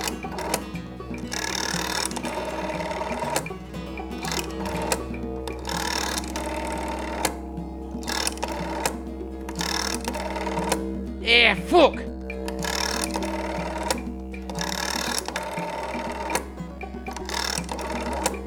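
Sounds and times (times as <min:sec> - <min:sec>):
rotary telephone dial whirring and ratcheting: 0:00.0 - 0:10.9, 0:12.1 - 0:18.4
man muttering: 0:11.2 - 0:12.1.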